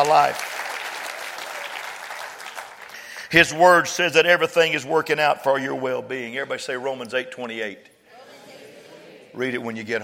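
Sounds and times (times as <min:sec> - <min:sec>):
speech: 0:00.0 - 0:00.5, 0:03.3 - 0:07.9, 0:09.4 - 0:10.0
audience clapping hands: 0:00.0 - 0:03.9.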